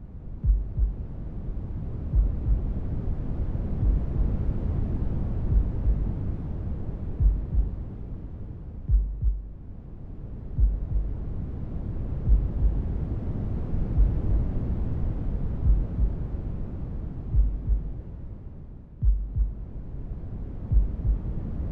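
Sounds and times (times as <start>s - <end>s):
noise: 0.0s - 21.7s
heartbeat: 0.4s - 1.0s, 2.1s - 2.7s, 3.8s - 4.2s, 5.5s - 6.0s, 7.2s - 7.8s, 8.9s - 9.5s, 10.6s - 11.1s, 12.2s - 12.9s, 14.0s - 14.3s, 15.6s - 16.2s, 17.3s - 17.9s, 19.0s - 19.7s, 20.7s - 21.3s.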